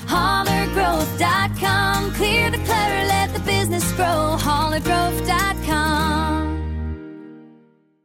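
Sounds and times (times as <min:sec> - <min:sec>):
jingle: 0:00.2 - 0:06.9.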